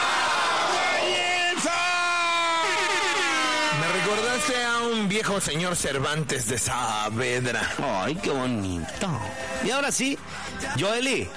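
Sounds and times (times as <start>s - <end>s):
crowd applause and cheering: 0.0s - 5.3s
speech: 4.4s - 11.3s.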